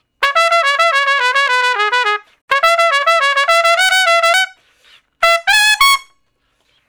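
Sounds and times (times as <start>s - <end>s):
trumpet shuffle in D flat: 0.2s - 6.8s.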